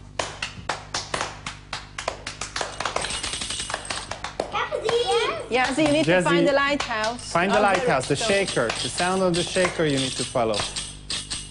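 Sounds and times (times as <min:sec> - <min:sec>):
children clapping hands: 0:00.0 - 0:09.0
speech: 0:04.9 - 0:10.8.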